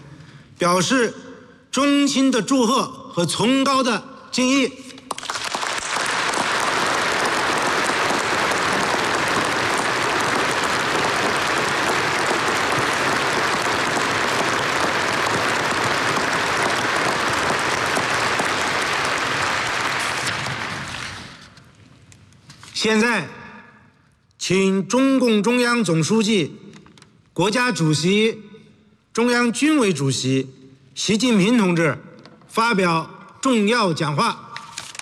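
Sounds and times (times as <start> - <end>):
speech: 0.6 - 4.9, 24.5 - 26.6, 27.4 - 28.5, 29.2 - 34.4
large crowd applause at a ceremony honouring contributors to reform and opening-up: 5.1 - 21.6.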